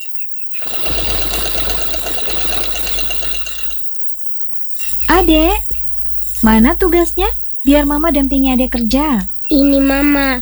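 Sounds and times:
sewing machine whirring: 0:00.5 - 0:04.2
speech: 0:05.1 - 0:05.6, 0:06.4 - 0:10.4.

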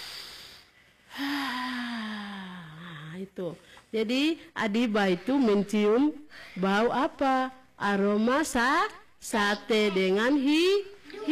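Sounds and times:
breathing in through the nose and out through the mouth: 0:00.0 - 0:04.5, 0:06.2 - 0:06.7
speech: 0:03.2 - 0:11.2.

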